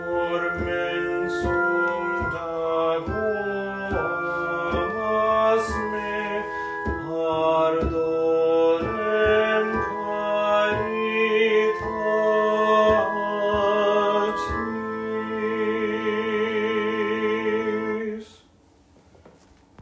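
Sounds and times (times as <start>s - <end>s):
bass voice singing: 0.0s - 18.4s.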